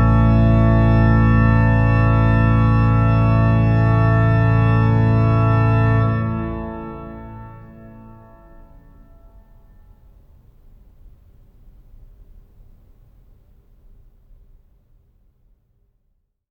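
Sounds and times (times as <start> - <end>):
organ prelude in B flat: 0.0 - 9.9.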